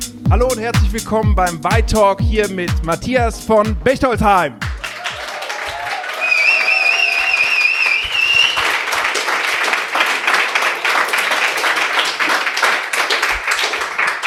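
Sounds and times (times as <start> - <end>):
speech: 0.3 - 4.7
crowd clapping in a pop-up store in Berlin Mitte: 4.6 - 14.2.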